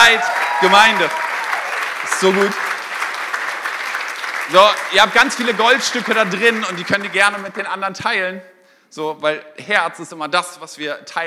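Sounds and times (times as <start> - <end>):
audience applause: 0.0 - 7.7
speech: 0.1 - 1.2, 2.0 - 2.6, 4.5 - 11.2.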